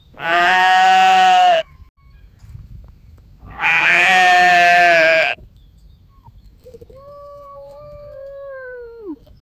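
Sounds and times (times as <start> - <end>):
goat bleating in fear: 0.2 - 1.6, 3.5 - 5.4.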